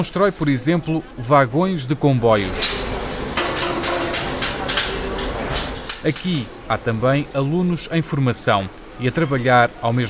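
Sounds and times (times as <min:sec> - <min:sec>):
speech: 0:00.0 - 0:02.9, 0:06.0 - 0:10.0
steady mechanical hum in a metalworking shop: 0:00.0 - 0:10.0
hammer strikes on metal: 0:03.4 - 0:05.0.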